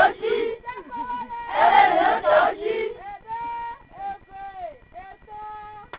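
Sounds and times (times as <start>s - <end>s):
chanting: 0.0s - 4.2s.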